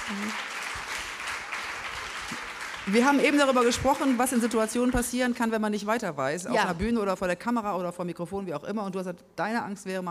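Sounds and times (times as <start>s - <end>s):
audience clapping: 0.0s - 5.7s
speech: 0.1s - 0.5s, 2.9s - 10.0s.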